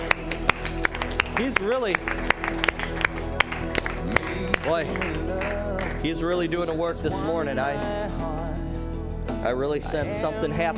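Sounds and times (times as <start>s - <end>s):
audience hand clapping: 0.0s - 6.3s
speech: 1.4s - 8.4s, 9.4s - 10.7s.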